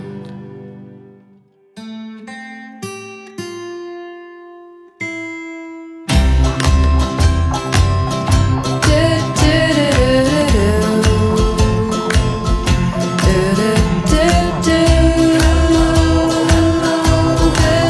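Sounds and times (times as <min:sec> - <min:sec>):
jingle singing: 0:06.3 - 0:17.8.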